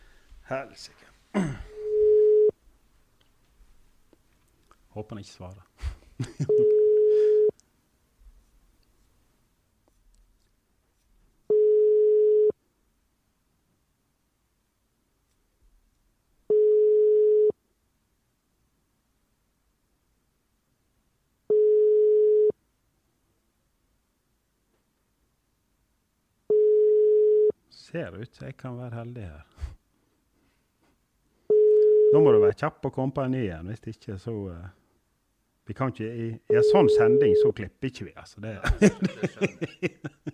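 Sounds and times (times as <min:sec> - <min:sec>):
speech: 0:00.5 - 0:01.6, 0:05.0 - 0:06.8, 0:27.9 - 0:29.7, 0:32.1 - 0:34.8, 0:35.7 - 0:40.3
telephone ringback tone while a call is dialed out: 0:01.8 - 0:02.5, 0:06.5 - 0:07.5, 0:11.5 - 0:12.5, 0:16.5 - 0:17.6, 0:21.5 - 0:22.6, 0:26.5 - 0:27.5, 0:31.5 - 0:32.2, 0:36.5 - 0:37.5
laughter: 0:05.8 - 0:06.7, 0:38.6 - 0:40.3.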